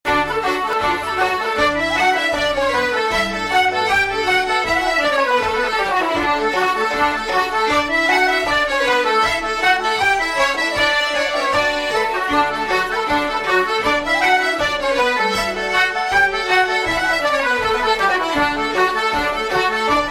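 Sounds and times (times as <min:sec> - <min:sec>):
Irish hornpipe tune: 0:00.1 - 0:20.0.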